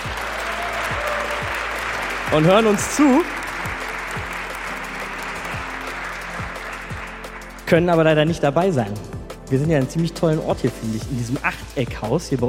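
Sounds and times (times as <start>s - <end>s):
live audience applause: 0.0s - 7.7s
speech: 2.3s - 3.4s, 7.7s - 12.4s.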